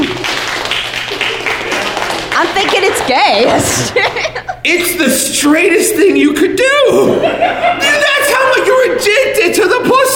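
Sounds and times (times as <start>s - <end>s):
crowd clapping: 0.0s - 4.4s
laughter: 2.9s - 5.0s, 6.9s - 8.8s
speech: 3.0s - 10.1s.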